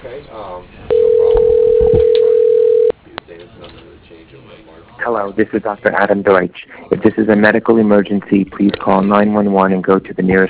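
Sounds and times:
telephone ringback tone while calling a cell phone: 0.9 - 2.9
speech: 5.4 - 10.4.

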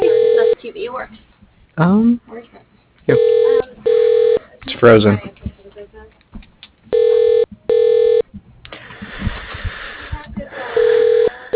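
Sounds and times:
telephone ringing: 0.0 - 0.6, 3.1 - 4.4, 6.9 - 8.2, 10.7 - 11.5
speech: 0.8 - 3.6, 4.8 - 5.3.

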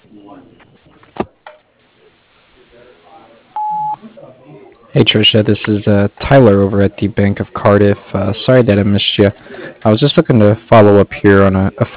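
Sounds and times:
recorded voicemail voice speaking: 2.9 - 11.9
voicemail beep on a construction company's phone line: 3.6 - 4.0
speech: 5.0 - 11.9.

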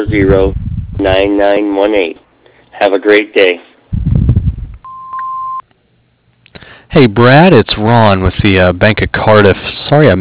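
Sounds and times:
speech: 0.1 - 2.2, 2.8 - 3.7, 7.0 - 10.1
voicemail beep before recording a message: 4.8 - 5.6.

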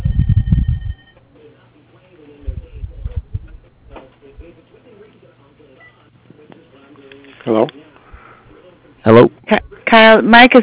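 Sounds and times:
telephone ringing: 0.0 - 1.2
speech: 9.0 - 10.6.

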